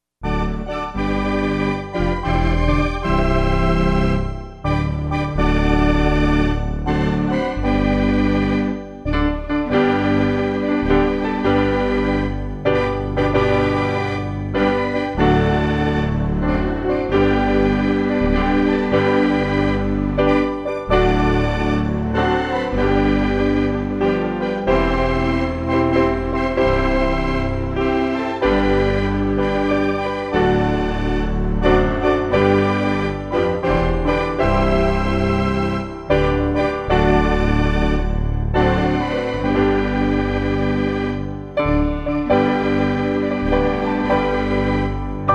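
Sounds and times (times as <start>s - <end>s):
instrumental music: 0.2s - 45.3s.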